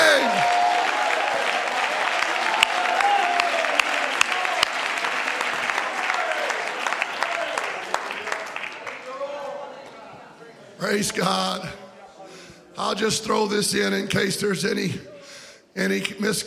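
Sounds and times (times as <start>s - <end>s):
people shouting and cheering: 0.0s - 7.9s
audience applause: 0.0s - 9.7s
speech: 10.9s - 11.8s, 12.8s - 15.1s, 15.8s - 16.4s.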